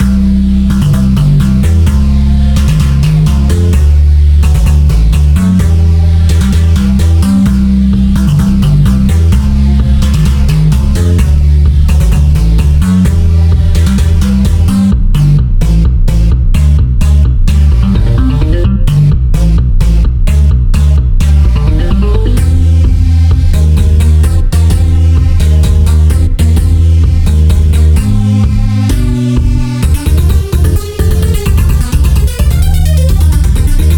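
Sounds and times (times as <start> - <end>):
synthesizer music: 0.0 - 33.9.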